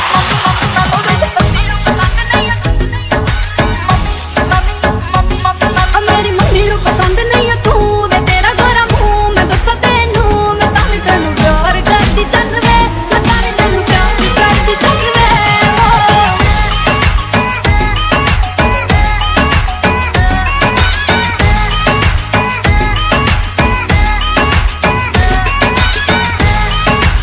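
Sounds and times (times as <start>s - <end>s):
Hindi Bollywood ringtone: 0.1s - 27.2s.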